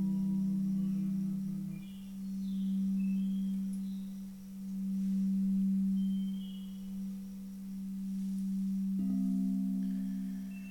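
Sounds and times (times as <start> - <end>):
singing bowls humming: 0.0 - 10.7.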